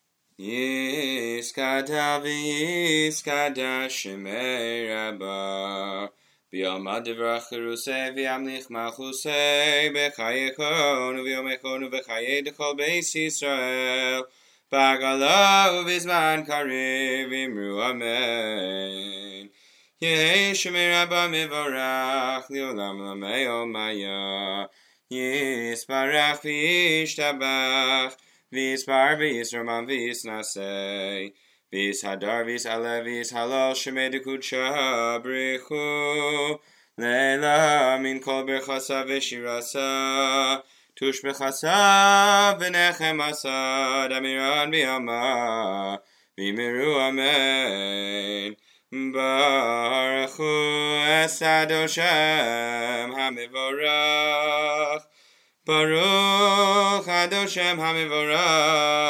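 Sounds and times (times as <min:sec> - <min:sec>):
prayer chanting: 0:00.4 - 0:55.1, 0:55.7 - 0:59.0.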